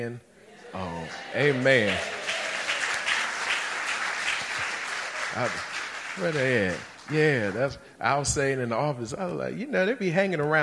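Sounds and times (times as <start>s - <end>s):
speech: 0.0s - 2.2s, 5.3s - 10.6s
audience applause: 0.8s - 7.8s.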